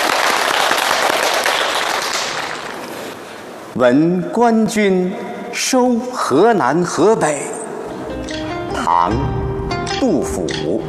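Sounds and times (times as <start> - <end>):
audience applause: 0.0 - 3.1
speech: 3.8 - 7.5, 9.0 - 9.3, 10.0 - 10.8.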